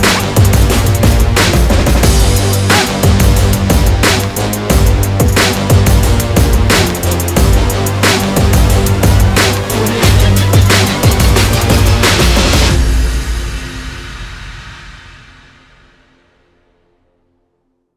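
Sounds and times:
energetic hip hop music: 0:00.0 - 0:13.6.

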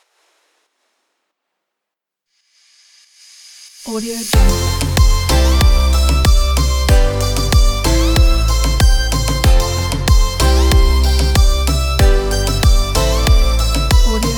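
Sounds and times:
tropical summer music: 0:04.4 - 0:14.3.

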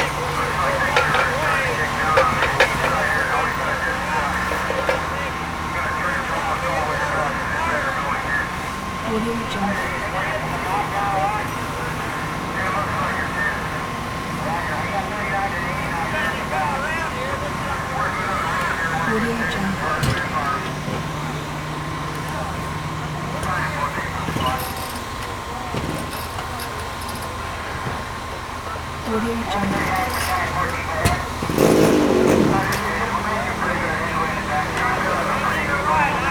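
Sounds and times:
trucks idling at an exterior fire scene: 0:00.0 - 0:36.3
power tools at an exterior fire scene: 0:29.1 - 0:33.2.

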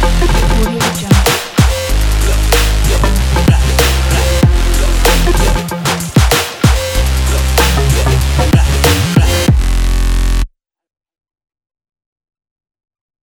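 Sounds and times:
cinematic sport music: 0:00.0 - 0:09.7.

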